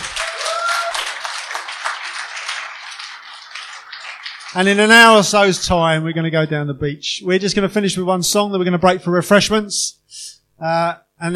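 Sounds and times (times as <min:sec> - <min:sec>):
crowd applauding: 0:00.0 - 0:05.8
speech: 0:04.5 - 0:11.3.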